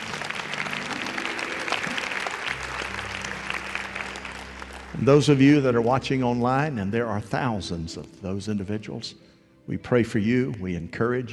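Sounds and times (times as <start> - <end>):
audience applause: 0.0 - 6.5
speech: 5.0 - 11.3.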